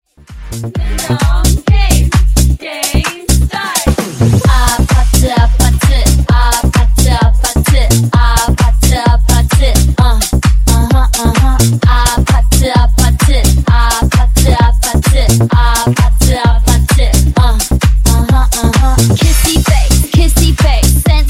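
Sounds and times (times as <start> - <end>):
disco funk music: 0.1 - 21.2.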